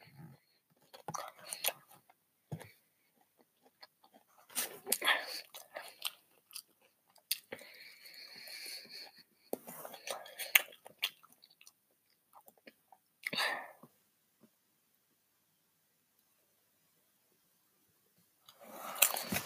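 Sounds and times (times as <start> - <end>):
chewing food while eating: 0.6 - 13.4, 18.5 - 19.4.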